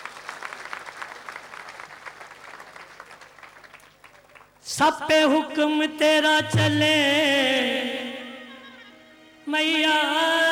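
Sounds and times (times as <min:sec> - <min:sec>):
audience applause: 0:00.0 - 0:04.6
speech: 0:04.7 - 0:08.0, 0:09.5 - 0:10.4.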